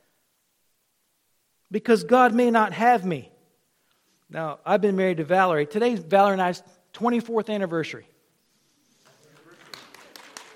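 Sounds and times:
speech: 1.7s - 3.3s, 4.3s - 8.1s
audience applause: 9.1s - 10.5s.

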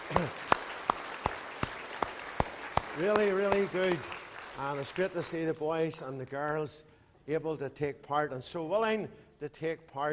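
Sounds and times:
clapping for a children's church program: 0.0s - 5.4s
speech: 3.0s - 10.1s.

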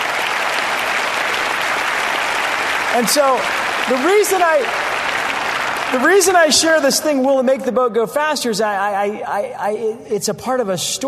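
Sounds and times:
audience applause at a fundraising event: 0.0s - 7.2s
speech: 3.0s - 4.8s, 5.9s - 11.0s.

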